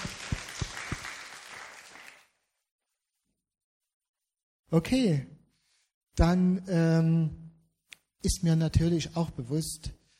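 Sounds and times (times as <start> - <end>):
audience applause: 0.0 - 2.3
speech: 4.7 - 5.3, 6.2 - 7.4, 8.2 - 10.0.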